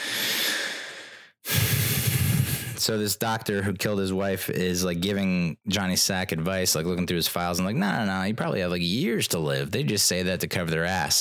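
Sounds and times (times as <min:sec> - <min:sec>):
long breathy exhale: 0:00.0 - 0:02.8
speech: 0:02.8 - 0:11.1.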